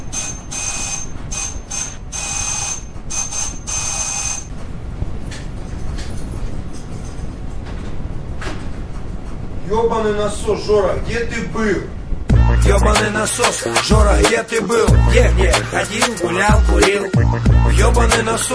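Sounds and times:
doorbell ringing: 0:00.0 - 0:04.5
speech: 0:09.7 - 0:12.0, 0:12.6 - 0:18.5.

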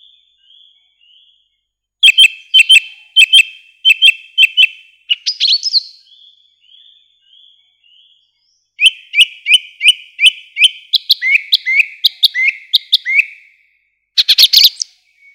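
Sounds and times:
song thrush singing: 0:00.0 - 0:15.3.

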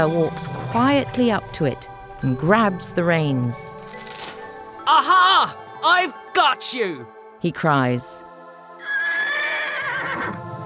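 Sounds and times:
speech: 0:00.0 - 0:03.8, 0:04.9 - 0:08.2
horse whinnying: 0:08.8 - 0:10.4.

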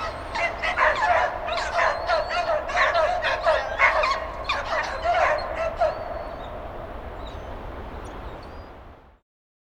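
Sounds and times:
bloodhound barking outdoors: 0:00.0 - 0:06.1.

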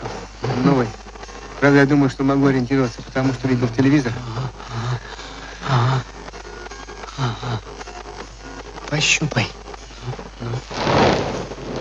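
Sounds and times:
speech: 0:00.8 - 0:01.0, 0:01.6 - 0:06.1, 0:08.9 - 0:11.0
distant underground explosions in a mine: 0:10.7 - 0:11.7.

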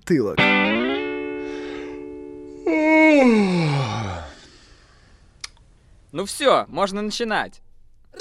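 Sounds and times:
speech: 0:00.1 - 0:00.8, 0:06.2 - 0:07.6
small yawn: 0:02.6 - 0:05.1.

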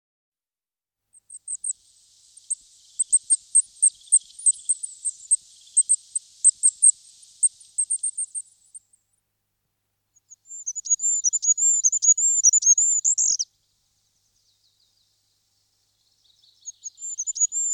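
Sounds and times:
goldcrest singing: 0:01.2 - 0:08.9, 0:10.2 - 0:17.7.

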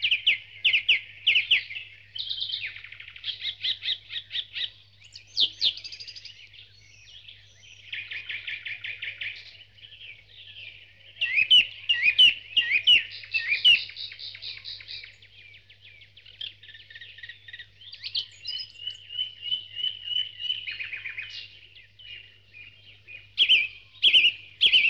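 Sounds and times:
birds in a dawn chorus twittering and trilling: 0:00.0 - 0:24.8.

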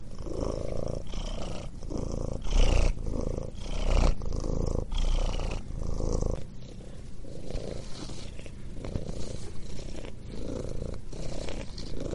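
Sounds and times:
cat purring: 0:00.0 - 0:12.1.

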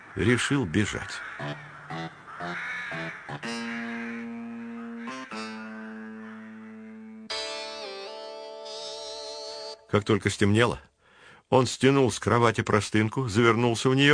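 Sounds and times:
crows cawing: 0:00.0 - 0:07.3
speech: 0:00.2 - 0:04.3, 0:10.0 - 0:10.9, 0:11.5 - 0:14.1.

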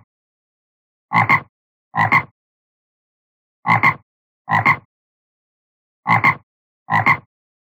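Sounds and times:
frog croak: 0:01.1 - 0:02.4, 0:03.7 - 0:04.9, 0:06.0 - 0:07.3.

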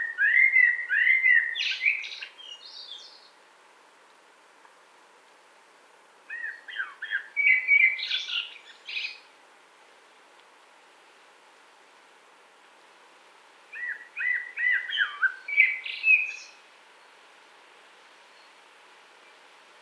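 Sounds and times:
common blackbird singing: 0:00.0 - 0:03.3, 0:06.3 - 0:09.2, 0:13.8 - 0:16.6.

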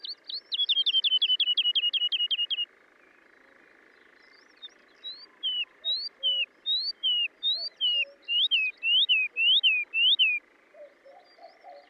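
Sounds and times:
woodlark singing: 0:00.0 - 0:02.6, 0:05.0 - 0:11.8.

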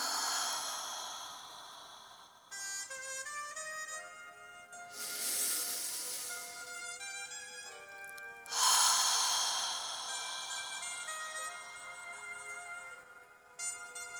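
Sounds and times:
slow breathing during a guided breathing exercise: 0:00.0 - 0:02.8, 0:04.9 - 0:07.0, 0:08.5 - 0:12.0
soft sustained musical tones: 0:00.0 - 0:03.0, 0:04.9 - 0:14.0.

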